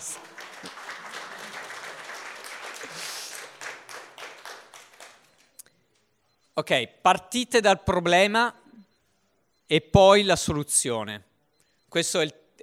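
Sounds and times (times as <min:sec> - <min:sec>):
audience applause: 0:00.0 - 0:05.4
speech: 0:06.6 - 0:08.6, 0:09.7 - 0:11.3, 0:11.9 - 0:12.6.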